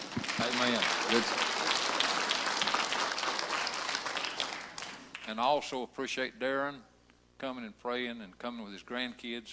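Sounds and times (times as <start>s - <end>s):
audience applause: 0.0s - 5.2s
speech: 0.4s - 1.5s, 5.3s - 9.5s.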